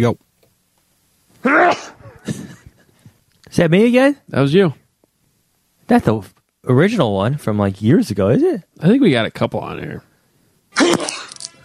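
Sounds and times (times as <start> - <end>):
speech: 0.0 - 0.3, 1.4 - 2.4, 3.5 - 4.8, 5.9 - 10.1
man sneezing: 1.4 - 2.6, 10.7 - 11.4.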